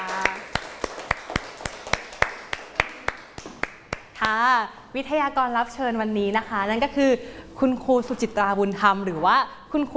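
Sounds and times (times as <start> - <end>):
audience clapping: 0.0 - 4.3
speech: 4.2 - 9.9.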